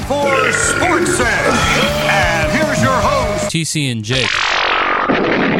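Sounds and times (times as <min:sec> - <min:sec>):
loud burp: 0:00.2 - 0:03.4
speech: 0:03.5 - 0:05.5.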